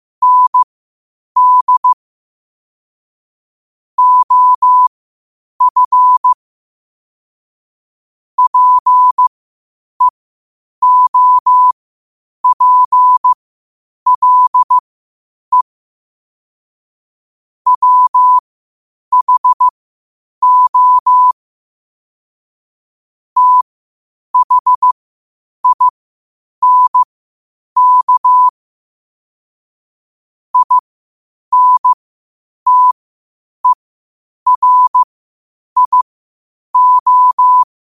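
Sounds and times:
morse code at 5 wpm: 0.2s - 0.7s, 1.4s - 2.0s, 4.0s - 4.9s, 5.6s - 6.4s, 8.4s - 9.3s, 10.8s - 11.8s, 12.4s - 13.4s, 14.1s - 14.8s, 17.7s - 18.4s, 19.1s - 19.7s, 20.4s - 21.4s, 23.4s - 23.7s, 24.4s - 25.0s, 25.6s - 25.9s, 26.6s - 27.1s, 27.8s - 28.5s, 30.6s - 30.8s, 31.5s - 32.0s, 32.7s - 33.0s, 34.5s - 35.1s, 35.8s - 36.1s, 36.8s - 37.7s.

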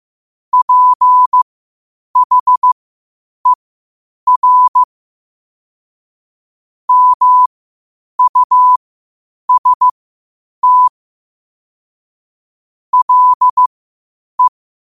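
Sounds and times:
morse code at 5 wpm: 0.5s - 1.4s, 2.2s - 2.8s, 4.3s - 4.9s, 6.9s - 7.5s, 8.2s - 8.8s, 9.5s - 10.0s, 10.6s - 10.9s, 13.0s - 13.7s.

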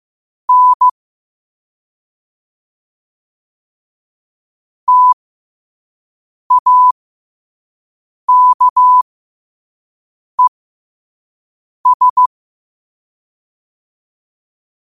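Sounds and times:
morse code at 5 wpm: 0.5s - 0.9s, 4.9s - 5.2s, 6.5s - 7.0s, 8.3s - 9.0s, 11.8s - 12.3s.

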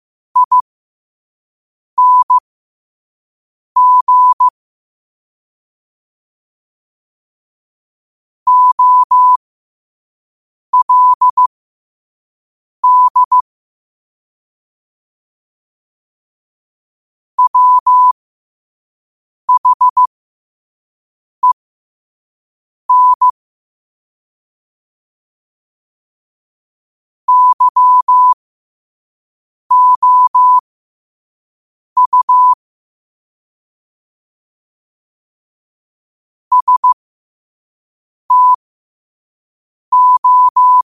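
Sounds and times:
morse code at 5 wpm: 0.4s - 0.6s, 2.0s - 2.4s, 3.8s - 4.5s, 8.5s - 9.4s, 10.8s - 11.5s, 12.8s - 13.4s, 17.4s - 18.2s, 19.5s - 20.1s, 22.9s - 23.3s, 27.3s - 28.4s, 29.7s - 30.6s, 32.0s - 32.6s, 36.5s - 37.0s, 38.3s - 38.6s, 39.9s - 40.8s.

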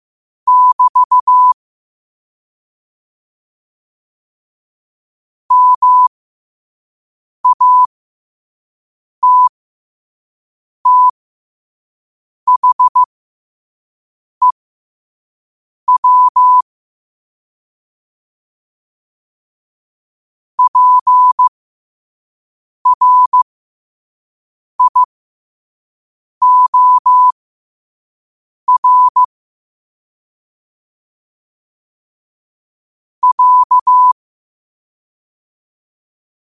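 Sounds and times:
morse code at 5 wpm: 0.5s - 1.6s, 5.5s - 6.1s, 7.4s - 7.9s, 9.2s - 9.5s, 10.9s - 11.2s, 12.5s - 13.1s, 15.9s - 16.6s, 20.6s - 21.5s, 22.9s - 23.4s, 24.8s - 25.1s, 26.4s - 27.4s, 28.7s - 29.3s, 33.2s - 34.2s.

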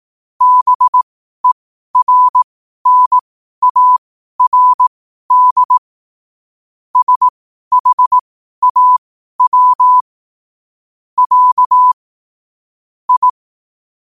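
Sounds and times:
morse code at 5 wpm: 0.4s - 5.8s, 7.0s - 10.0s, 11.2s - 12.0s, 13.1s - 13.4s.

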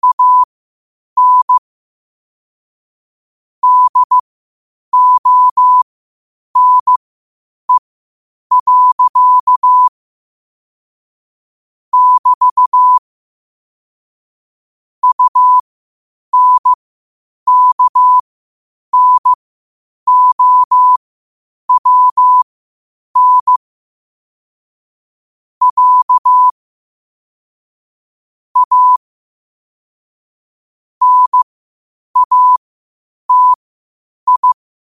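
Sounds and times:
morse code at 5 wpm: 0.0s - 0.5s, 1.2s - 1.6s, 3.6s - 4.2s, 5.0s - 5.8s, 6.6s - 7.0s, 8.5s - 9.9s, 12.0s - 13.0s, 15.0s - 15.6s, 16.3s - 16.8s, 17.5s - 18.2s, 18.9s - 19.4s, 20.1s - 21.0s, 21.7s - 22.4s, 23.2s - 23.6s, 25.6s - 26.5s, 28.6s - 29.0s, 31.0s - 31.4s, 32.2s - 32.6s, 33.3s - 33.6s, 34.3s - 34.6s.

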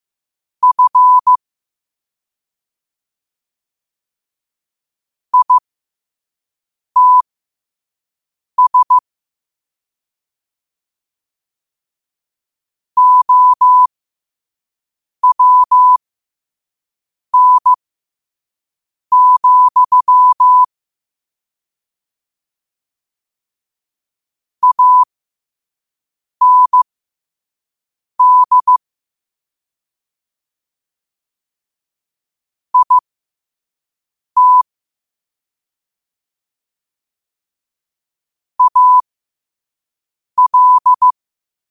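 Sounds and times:
morse code at 5 wpm: 0.6s - 1.3s, 5.4s - 5.6s, 7.0s - 7.2s, 8.6s - 9.0s, 13.0s - 13.9s, 15.2s - 16.0s, 17.4s - 17.8s, 19.1s - 20.7s, 24.6s - 25.1s, 26.4s - 26.8s, 28.2s - 28.8s, 32.8s - 33.0s, 34.4s - 34.7s, 38.6s - 39.0s, 40.4s - 41.2s.

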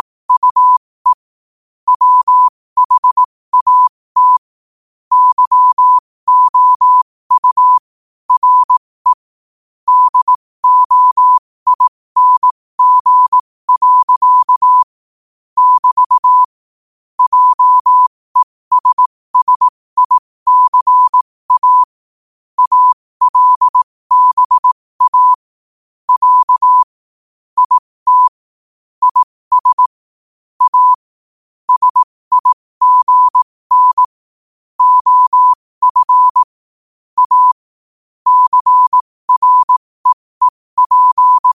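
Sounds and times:
morse code at 5 wpm: 0.0s - 1.2s, 1.9s - 4.5s, 5.1s - 9.3s, 9.9s - 15.0s, 15.6s - 16.5s, 17.2s - 22.0s, 22.6s - 25.5s, 26.1s - 26.9s, 27.6s - 28.4s, 29.0s - 30.0s, 30.6s - 31.1s, 31.7s - 34.2s, 34.8s - 36.6s, 37.2s - 37.6s, 38.2s - 41.5s.

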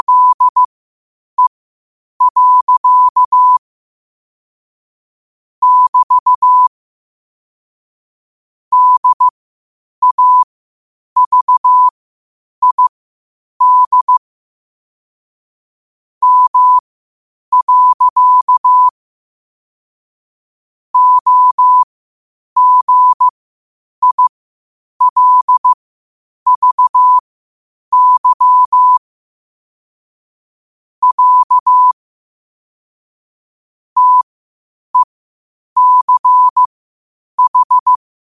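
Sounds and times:
morse code at 5 wpm: 0.0s - 0.7s, 2.2s - 3.6s, 5.6s - 6.7s, 8.7s - 9.3s, 10.0s - 10.5s, 11.2s - 11.9s, 12.6s - 12.9s, 13.6s - 14.2s, 16.2s - 16.8s, 17.5s - 19.0s, 21.0s - 21.9s, 22.6s - 23.3s, 24.0s - 24.3s, 25.0s - 25.8s, 26.5s - 27.2s, 27.9s - 29.0s, 31.0s - 32.0s, 34.0s - 34.3s, 35.8s - 36.7s, 37.4s - 38.0s.

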